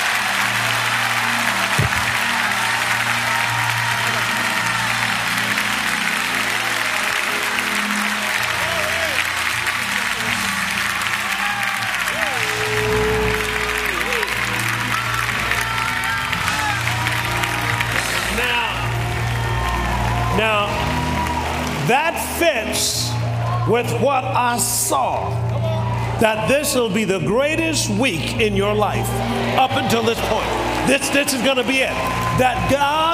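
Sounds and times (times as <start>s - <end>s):
audience clapping: 0.0s - 33.1s
speech: 23.8s - 25.6s, 26.2s - 33.1s.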